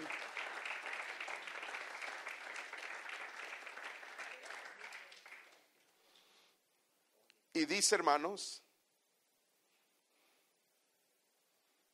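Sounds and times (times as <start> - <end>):
audience applauding: 0.0 - 5.9
speech: 7.6 - 8.6.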